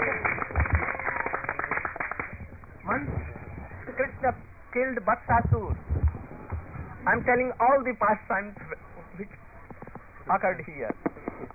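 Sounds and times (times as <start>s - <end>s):
hand claps: 0.0s - 2.6s
indistinct voices murmuring: 2.7s - 11.5s
speech: 2.9s - 3.4s, 4.0s - 5.9s, 7.0s - 9.4s, 10.3s - 11.5s.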